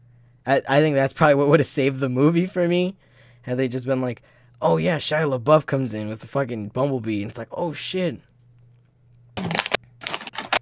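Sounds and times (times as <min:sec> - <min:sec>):
speech: 0:00.4 - 0:08.3
rustling a bag of chips: 0:09.4 - 0:10.6.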